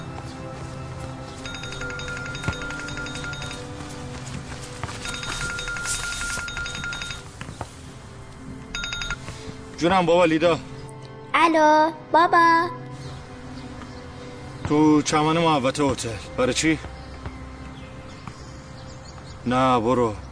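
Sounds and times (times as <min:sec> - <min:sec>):
mobile phone ringing: 0:01.4 - 0:03.9, 0:04.9 - 0:07.3, 0:08.7 - 0:09.2
speech: 0:09.8 - 0:10.7, 0:11.4 - 0:12.8, 0:14.7 - 0:16.9, 0:19.4 - 0:20.2.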